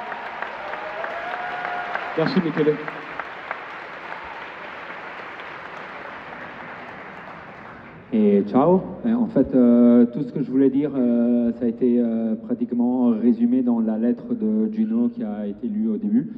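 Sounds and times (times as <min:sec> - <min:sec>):
audience applause: 0:00.0 - 0:08.1
speech: 0:02.2 - 0:03.0, 0:08.1 - 0:16.3.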